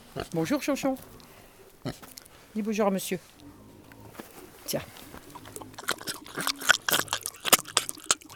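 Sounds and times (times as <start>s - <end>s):
speech: 0.2s - 3.4s, 4.7s - 5.0s, 6.4s - 6.6s
pig eating yogurt from a spoon: 4.0s - 8.3s.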